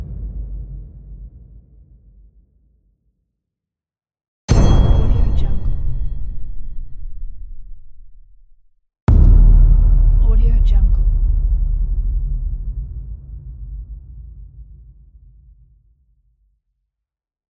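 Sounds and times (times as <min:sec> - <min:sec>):
booms: 0:00.0 - 0:02.3, 0:04.5 - 0:15.0.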